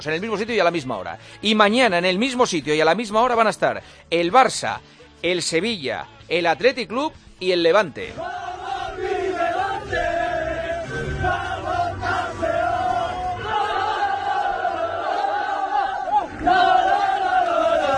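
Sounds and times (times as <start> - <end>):
speech: 0.0 - 8.5
crowd celebrating Levante football club's success singing and cheering: 8.0 - 17.9.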